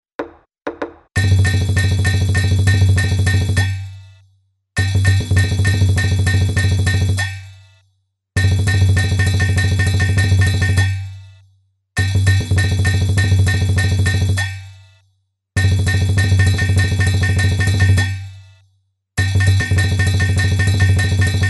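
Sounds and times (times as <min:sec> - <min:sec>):
lion dance music: 0:00.2 - 0:03.9, 0:04.8 - 0:07.5, 0:08.4 - 0:11.1, 0:12.0 - 0:14.7, 0:15.6 - 0:18.3, 0:19.2 - 0:21.4.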